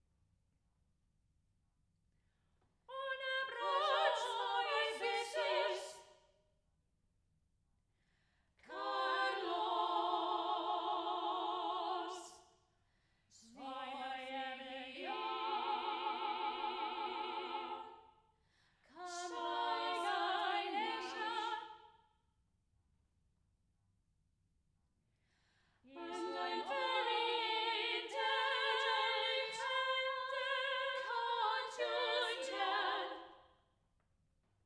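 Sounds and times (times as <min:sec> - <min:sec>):
vocal trio: 0:02.9 - 0:06.1, 0:08.6 - 0:12.4, 0:13.4 - 0:18.0, 0:18.9 - 0:21.8, 0:25.9 - 0:33.4.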